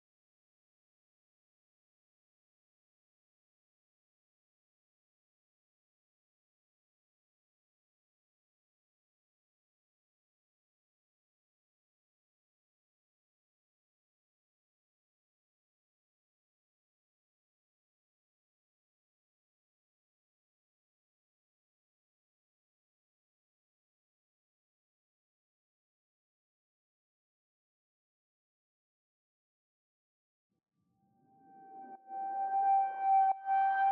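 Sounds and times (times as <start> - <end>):
synths and pads: 31.3 - 33.9.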